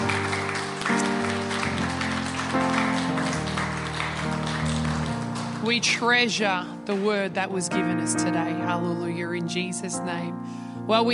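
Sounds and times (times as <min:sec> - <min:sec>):
audience applause: 0:00.0 - 0:06.3
speech: 0:05.7 - 0:11.1.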